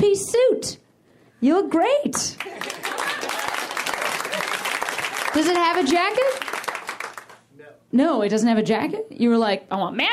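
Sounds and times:
speech: 1.4 - 2.9, 5.4 - 6.5, 7.9 - 10.1
audience applause: 2.4 - 7.4.

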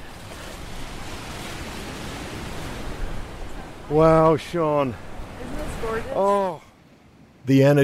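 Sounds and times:
ocean surf crashing on the shore: 0.0 - 7.8
wind: 0.0 - 7.8
speech: 3.9 - 6.6, 7.4 - 7.8.

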